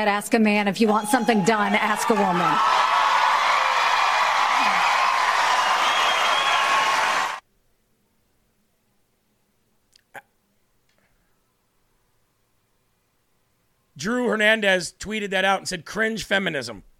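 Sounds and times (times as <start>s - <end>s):
speech: 0.0s - 3.0s, 14.0s - 16.9s
debate audience applauding: 1.2s - 7.4s.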